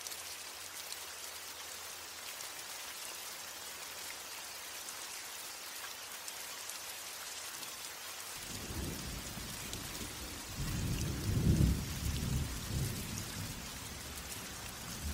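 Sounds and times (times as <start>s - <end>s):
light thunderstorm: 8.4s - 15.1s.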